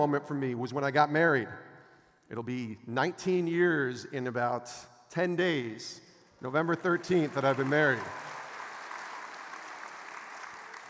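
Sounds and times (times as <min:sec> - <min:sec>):
speech: 0:00.0 - 0:01.7, 0:02.3 - 0:08.3
crowd applauding: 0:06.8 - 0:10.8.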